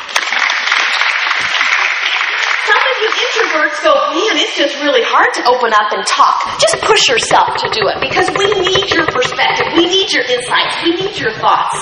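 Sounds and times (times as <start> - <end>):
audience clapping: 0.0 - 3.8
speech: 3.3 - 11.8.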